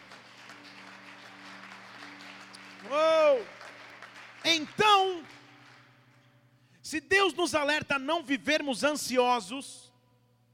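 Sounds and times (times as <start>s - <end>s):
audience applause: 0.0s - 6.2s
speech: 6.9s - 9.8s.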